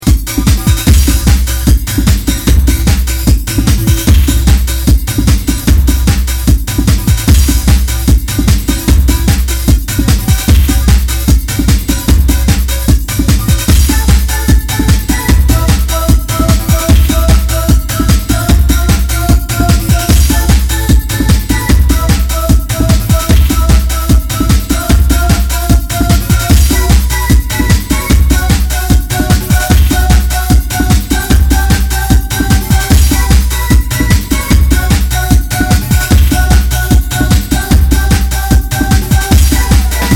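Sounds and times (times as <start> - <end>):
spiky trance music: 0.0 - 40.1.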